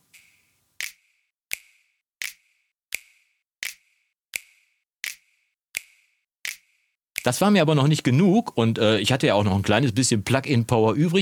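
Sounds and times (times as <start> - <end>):
finger snaps in a compressed mix: 0.1 - 3.8, 4.4 - 5.2
speech: 7.2 - 11.2.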